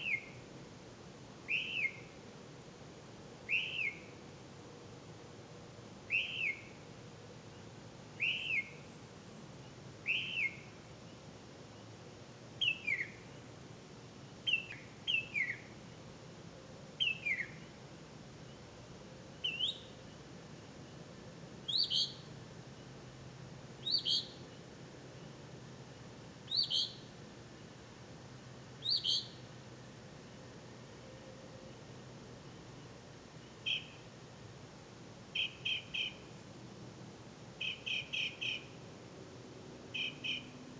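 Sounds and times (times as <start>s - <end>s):
bird: 1.5s - 2.2s, 3.5s - 4.2s, 6.1s - 6.8s, 7.5s - 9.0s, 10.0s - 10.7s, 12.6s - 13.5s, 14.4s - 15.8s, 17.0s - 17.7s, 19.3s - 21.0s, 21.6s - 23.0s, 23.8s - 25.3s, 26.5s - 27.1s, 28.8s - 29.4s, 33.4s - 34.1s, 35.4s - 36.3s, 37.6s - 38.8s, 39.9s - 40.6s.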